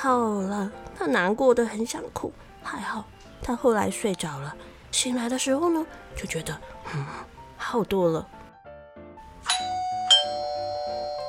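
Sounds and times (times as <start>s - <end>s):
speech: 0.0s - 8.4s
doorbell ringing: 9.4s - 11.2s.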